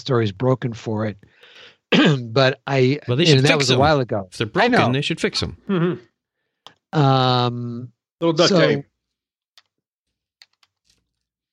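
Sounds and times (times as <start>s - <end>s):
speech: 0.0s - 6.1s, 6.9s - 8.9s
typing on a computer keyboard: 10.4s - 11.0s.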